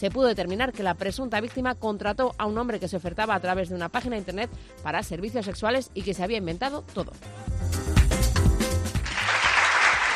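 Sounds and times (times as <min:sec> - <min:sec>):
speech: 0:00.0 - 0:07.8
applause: 0:08.9 - 0:10.1.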